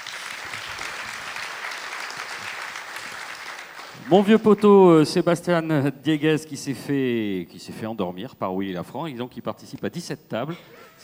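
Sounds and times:
audience applause: 0.0 - 4.6
speech: 4.0 - 11.0.

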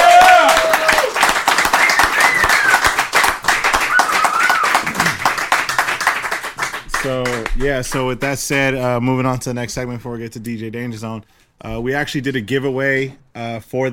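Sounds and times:
people shouting: 0.0 - 1.1, 3.9 - 5.2
audience clapping for a DJ after his set on a show: 0.0 - 8.3
speech: 7.1 - 13.9.

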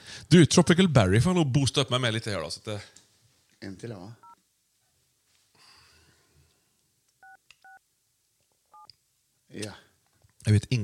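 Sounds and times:
speech: 0.3 - 3.0, 3.6 - 4.2, 9.5 - 9.8, 10.4 - 10.8
telephone number being dialed: 7.2 - 7.8.

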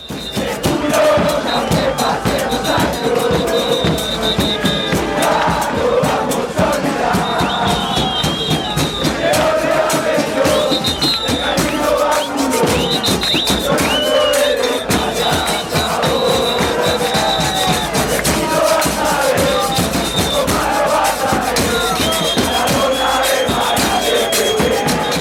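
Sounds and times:
football crowd chanting long chants: 0.0 - 25.2.

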